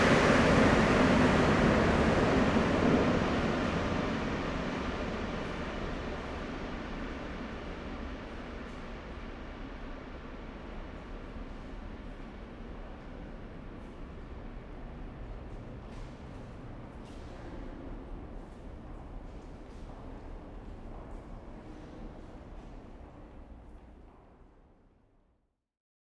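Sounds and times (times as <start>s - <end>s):
underground metro ambience at Louvre: 0.0s - 25.4s.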